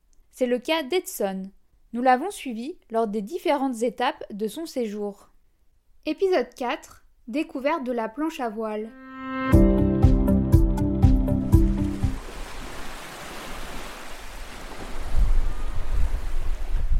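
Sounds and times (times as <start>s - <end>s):
speech: 0.4s - 5.3s, 6.0s - 9.0s
rhythmic musical notes: 8.9s - 12.2s
beach waves: 11.5s - 16.9s
wind on a beach: 11.9s - 16.9s.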